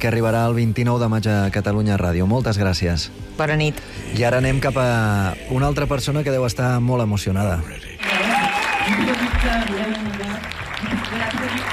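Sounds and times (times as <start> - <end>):
speech: 0.0 - 7.9
audience applause at film premiere: 8.0 - 11.7.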